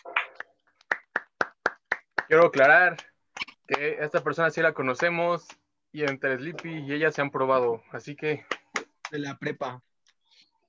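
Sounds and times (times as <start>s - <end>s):
hand claps: 0.0s - 9.4s
speech: 2.3s - 3.1s, 3.7s - 8.5s, 9.1s - 9.9s.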